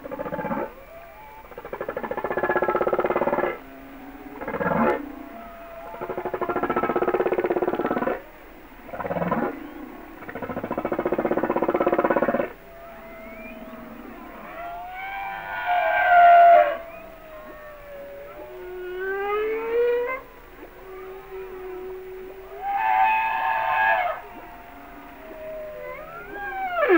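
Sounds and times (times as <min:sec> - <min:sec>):
humpback whales calling: 0:00.0 - 0:26.9.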